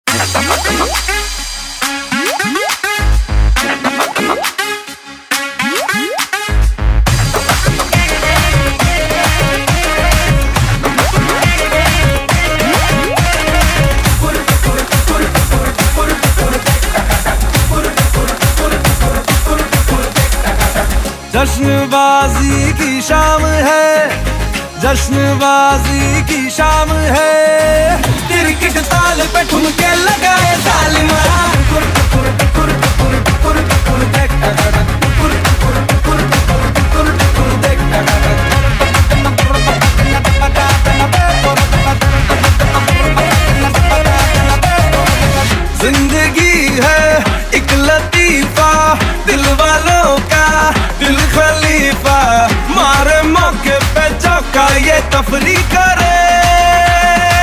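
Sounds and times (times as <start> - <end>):
hip hop and animation mix: 0.0 - 57.4.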